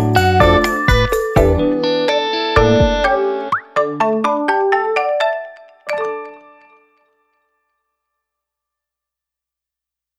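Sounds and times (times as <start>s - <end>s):
music loop: 0.0s - 6.6s.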